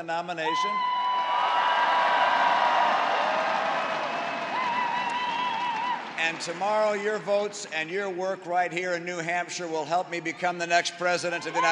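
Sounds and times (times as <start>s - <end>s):
speech: 0.0s - 1.0s, 6.2s - 11.7s
packed stadium crowd screaming standing ovation: 0.4s - 6.4s, 11.3s - 11.7s.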